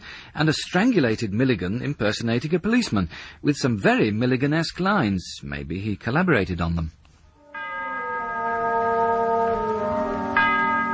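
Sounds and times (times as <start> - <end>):
speech: 0.4 - 7.0
clock bell striking eleven: 7.5 - 10.9.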